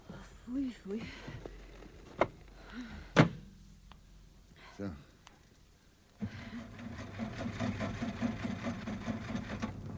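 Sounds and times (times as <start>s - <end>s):
speech: 0.5s - 1.5s
engine cranking but failing to start: 6.3s - 9.9s.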